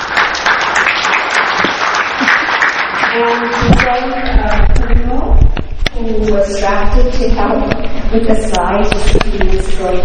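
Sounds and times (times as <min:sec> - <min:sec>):
audience applause: 0:00.0 - 0:03.6
speech: 0:03.2 - 0:05.0, 0:06.1 - 0:10.0.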